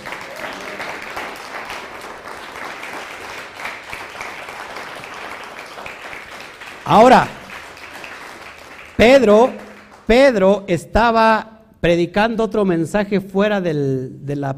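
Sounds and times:
loud sustained audience applause: 0:00.0 - 0:10.1
speech: 0:06.9 - 0:07.4, 0:09.0 - 0:14.5.

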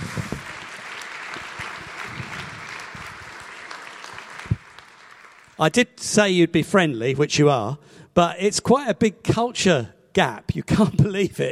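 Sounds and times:
crowd clapping: 0:00.0 - 0:05.8
speech: 0:05.6 - 0:11.4.

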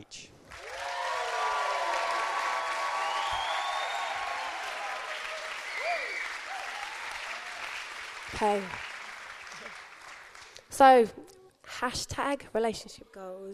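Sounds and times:
audience applause: 0:00.5 - 0:10.6
speech: 0:08.4 - 0:08.9, 0:10.8 - 0:11.2, 0:11.8 - 0:13.5.

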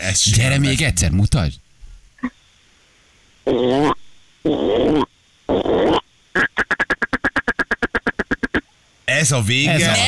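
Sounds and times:
speech: 0:00.0 - 0:01.6, 0:03.4 - 0:05.1, 0:09.2 - 0:10.0
person imitating frog croaks: 0:03.4 - 0:08.7.

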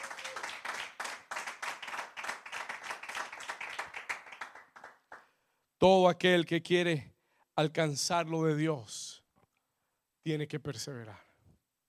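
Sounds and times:
audience clapping: 0:00.0 - 0:05.4
speech: 0:05.8 - 0:09.0, 0:10.2 - 0:11.2.

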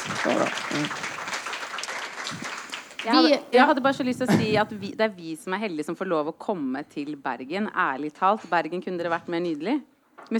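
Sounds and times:
audience applause: 0:00.0 - 0:03.5
speech: 0:00.2 - 0:01.1, 0:02.3 - 0:10.3.

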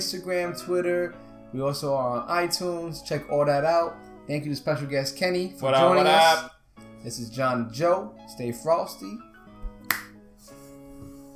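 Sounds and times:
speech: 0:00.0 - 0:09.3
finger snap: 0:09.5 - 0:11.3.

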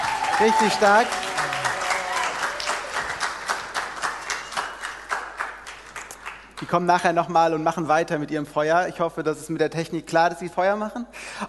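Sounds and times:
audience applause: 0:00.0 - 0:06.6
speech: 0:00.4 - 0:01.3, 0:06.7 - 0:11.4.

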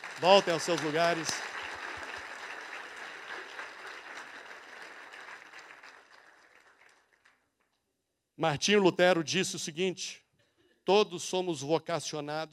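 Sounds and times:
crowd applause: 0:00.0 - 0:07.4
speech: 0:00.2 - 0:01.5, 0:08.4 - 0:10.2, 0:10.9 - 0:12.5.

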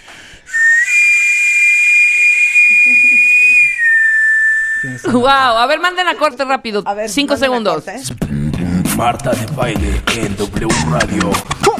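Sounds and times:
sweet potato vendor's steam whistle: 0:00.5 - 0:05.0
laughter: 0:02.6 - 0:03.6, 0:10.3 - 0:11.7
speech: 0:04.8 - 0:08.4, 0:09.0 - 0:11.6.

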